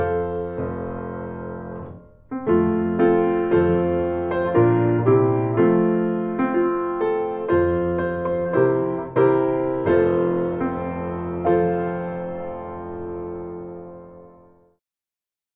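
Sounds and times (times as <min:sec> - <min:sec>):
piano piece: 0:00.0 - 0:14.8.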